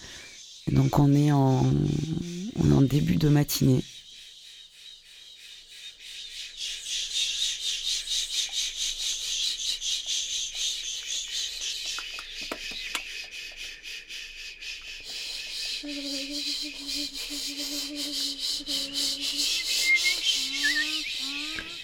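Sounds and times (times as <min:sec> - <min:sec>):
vocal ensemble imitating cicadas and insects: 0:00.0 - 0:21.8
speech: 0:00.7 - 0:03.9
whistled tones: 0:15.2 - 0:21.8.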